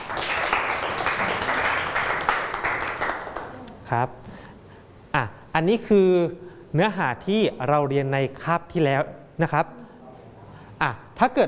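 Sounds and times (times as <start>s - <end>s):
group of students clapping: 0.0s - 3.6s
speech: 3.9s - 4.3s, 5.2s - 9.8s, 10.8s - 11.4s.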